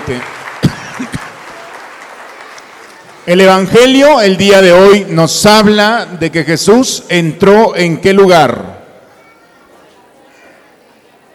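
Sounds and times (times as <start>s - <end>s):
scattered handclaps: 0.0s - 3.2s
speech: 0.1s - 0.3s, 1.0s - 1.2s, 3.2s - 8.8s.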